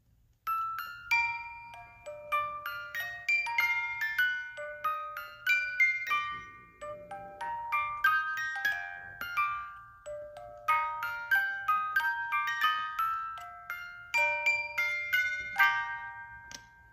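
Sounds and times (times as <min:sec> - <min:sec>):
18-note music box: 0:00.2 - 0:16.9.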